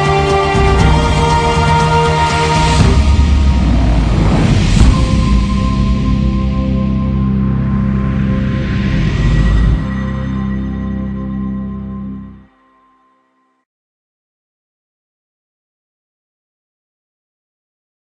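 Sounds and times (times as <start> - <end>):
instrumental background music: 0.0 - 13.6.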